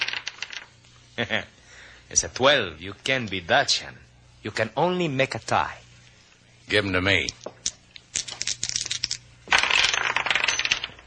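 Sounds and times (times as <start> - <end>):
dice rolling and spinning on table: 0.0 - 0.8, 7.4 - 11.0
speech: 1.2 - 5.8, 6.7 - 7.5.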